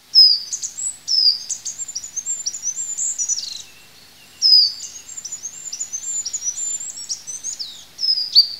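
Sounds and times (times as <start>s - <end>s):
goldcrest singing in high thin notes: 0.0s - 8.5s.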